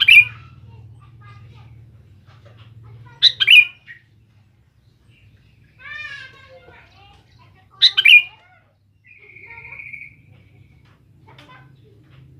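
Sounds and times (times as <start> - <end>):
Sooty-headed bulbul song: 0.0 - 0.6, 3.1 - 4.1, 5.6 - 10.9.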